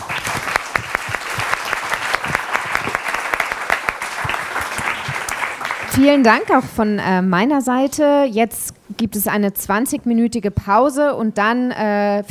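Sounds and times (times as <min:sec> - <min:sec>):
audience applause: 0:00.0 - 0:06.6
speech: 0:06.0 - 0:12.2.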